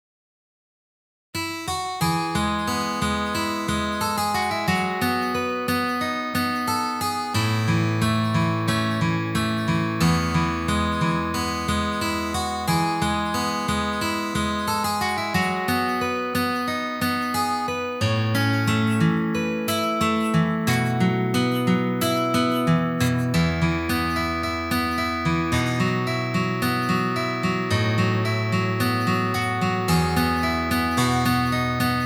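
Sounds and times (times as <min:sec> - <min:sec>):
guitar playing: 0:01.6 - 0:32.0.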